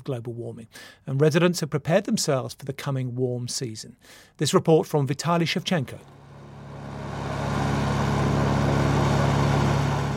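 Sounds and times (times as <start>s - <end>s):
speech: 0.0s - 6.2s
Russian army helicopter flying low over the Siberian forest: 6.0s - 10.1s.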